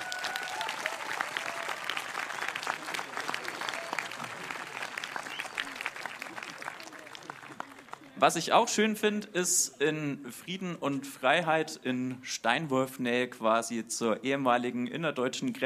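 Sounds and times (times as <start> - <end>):
audience applause: 0.0 - 8.2
speech: 8.2 - 15.6.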